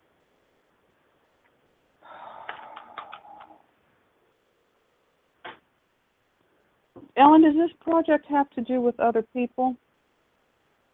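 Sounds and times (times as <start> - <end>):
Archangel Michael oracle cards being opened and handled: 2.4 - 3.5
speech: 7.2 - 9.8.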